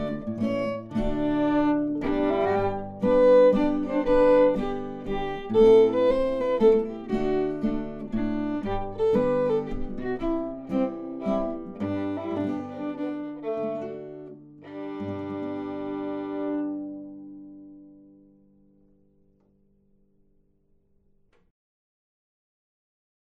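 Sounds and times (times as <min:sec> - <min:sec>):
waltz music: 0:00.0 - 0:17.2.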